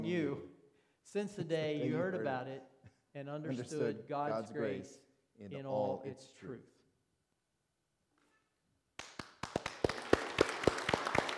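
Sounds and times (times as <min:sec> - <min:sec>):
speech: 0:00.0 - 0:00.5, 0:01.1 - 0:06.7
audience applause: 0:09.0 - 0:11.3.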